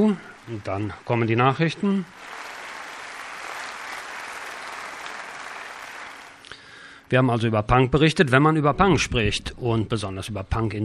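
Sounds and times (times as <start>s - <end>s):
speech: 0.0s - 2.4s, 7.1s - 10.8s
audience applause: 0.0s - 6.5s.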